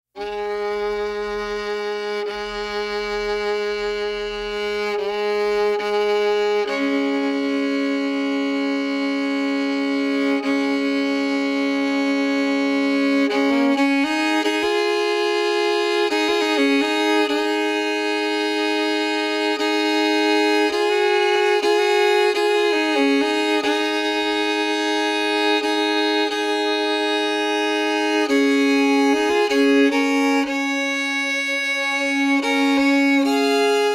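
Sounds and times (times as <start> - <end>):
violin intro: 0.1 - 33.9.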